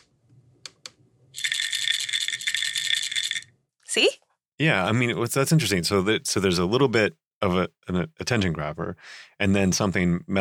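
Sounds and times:
pill bottle rattling: 1.4s - 3.5s
speech: 3.9s - 10.3s.

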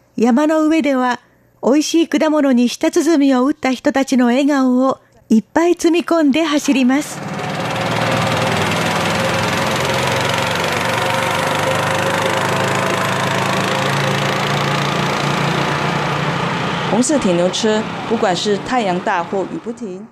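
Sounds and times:
speech: 0.2s - 7.3s, 17.0s - 20.1s
red farm transport vehicle engine: 6.6s - 19.9s.

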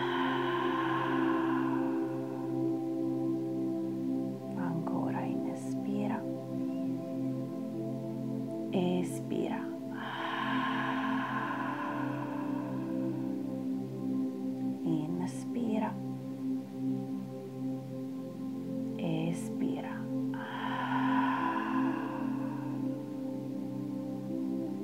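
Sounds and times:
breathy exhales through the mouth during a breathing exercise: 0.0s - 3.6s, 9.8s - 13.8s, 20.4s - 23.5s
sustained musical drone: 0.0s - 24.8s.

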